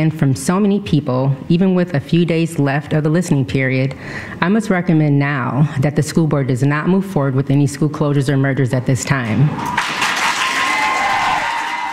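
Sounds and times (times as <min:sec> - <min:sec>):
speech: 0:00.0 - 0:10.0
crowd applause at public meeting: 0:09.6 - 0:11.9.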